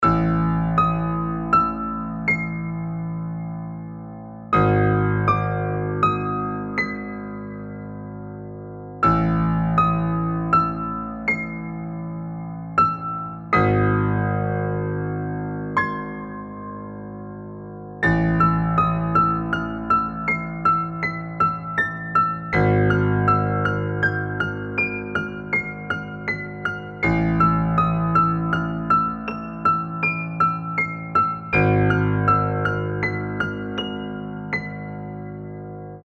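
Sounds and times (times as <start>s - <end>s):
horror-style piano: 0.0s - 36.0s.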